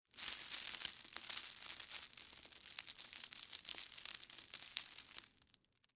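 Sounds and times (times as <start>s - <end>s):
soft ice cream cone debris: 0.1s - 5.9s.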